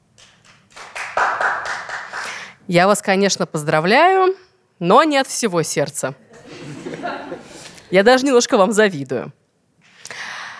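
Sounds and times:
audience clapping at a lecture on modern medicines: 0.2 - 2.6
speech: 2.7 - 6.2, 7.9 - 9.4
laughter: 6.3 - 7.7.

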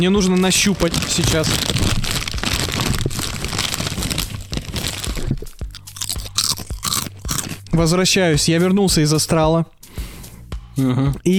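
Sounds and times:
speech: 0.0 - 2.0, 7.8 - 9.8, 10.8 - 11.3
crunching potato chips being chewed: 0.0 - 7.9.

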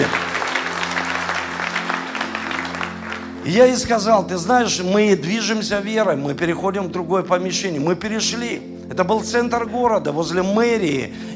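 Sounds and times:
audience applauding: 0.0 - 3.9
speech: 3.4 - 11.3.

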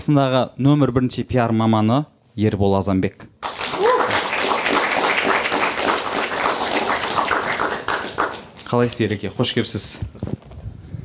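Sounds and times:
speech: 0.0 - 3.4, 8.7 - 10.4
audience applause greeting a guest on a Kazakh-language talk show: 3.4 - 8.9.

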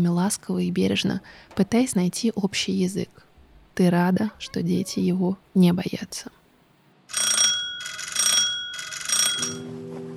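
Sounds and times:
speech: 0.0 - 6.4, 9.4 - 9.8
electric doorbell ringing: 7.1 - 9.7.

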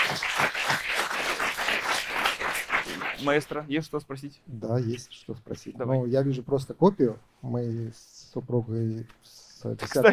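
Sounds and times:
listeners at a talk applauding: 0.0 - 3.6
speech: 0.1 - 0.8, 3.2 - 10.1.

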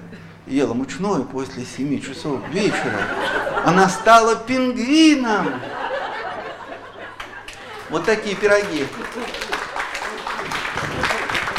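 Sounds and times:
speech: 0.5 - 5.8, 7.9 - 9.5
laughter: 2.1 - 11.5
audience clapping: 6.8 - 11.5.

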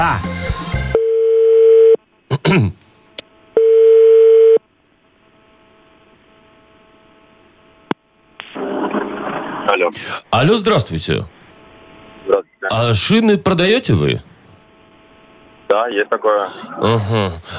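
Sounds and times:
speech: 0.0 - 0.3, 2.5 - 2.8, 9.7 - 11.4, 12.2 - 14.3, 15.7 - 17.5
telephone ringback tones: 0.9 - 2.0, 3.6 - 4.6
laughter: 16.4 - 17.5.

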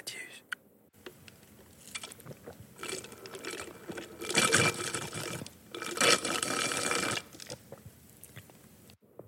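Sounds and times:
speaker sipping a drink: 1.8 - 8.6.

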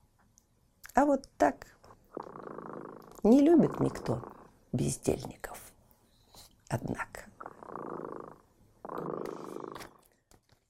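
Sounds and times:
speech: 1.0 - 2.3, 3.2 - 5.7, 6.7 - 7.2
cat purring: 2.1 - 5.4, 7.2 - 10.0.

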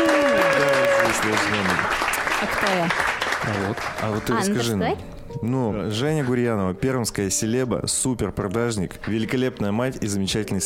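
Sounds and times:
applause sound effect: 0.0 - 4.6
speech: 1.3 - 1.9, 2.6 - 10.6.

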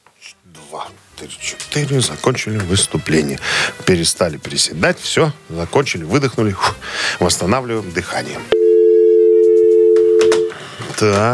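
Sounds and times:
speech: 0.5 - 8.6, 11.0 - 11.3
telephone busy signal: 8.5 - 10.6.

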